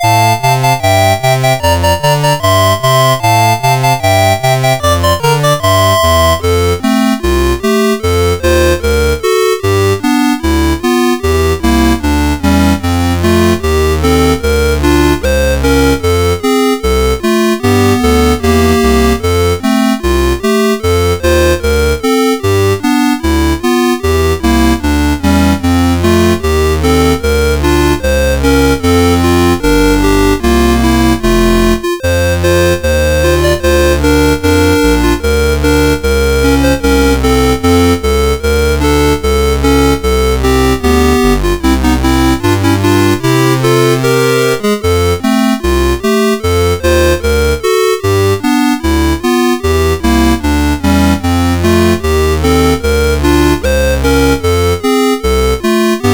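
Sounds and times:
Christmas carol on CSG8580R5 chip: 0.0s - 56.1s.

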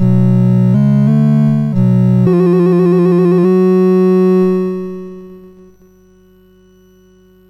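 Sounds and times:
MOS6581R2 SID chip synth: 0.0s - 5.7s.

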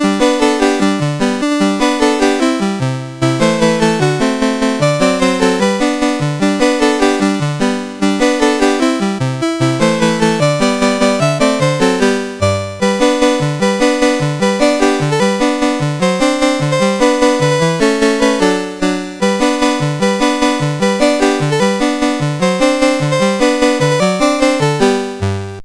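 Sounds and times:
chiptune melody on CSG8580R5 sound chip: 0.0s - 25.6s.

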